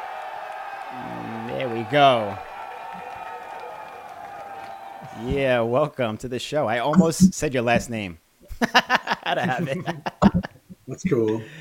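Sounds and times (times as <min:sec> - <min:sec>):
applause: 0:00.0 - 0:05.4
speech: 0:01.9 - 0:02.5, 0:05.2 - 0:10.1, 0:10.9 - 0:11.5
laughter: 0:08.6 - 0:10.6.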